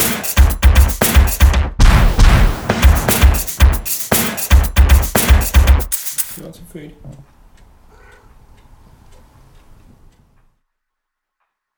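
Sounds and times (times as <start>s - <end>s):
kitchen drumkit mixed: 0.0s - 6.4s.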